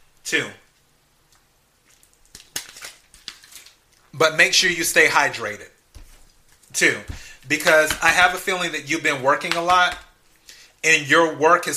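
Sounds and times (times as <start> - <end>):
speech: 0.3 - 0.6, 4.2 - 5.8, 6.7 - 10.0, 10.8 - 11.7
person sipping water: 1.2 - 2.6.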